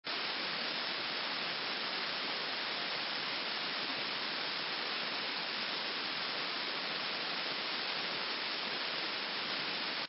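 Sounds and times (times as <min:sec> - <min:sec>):
white noise: 0:00.1 - 0:10.0.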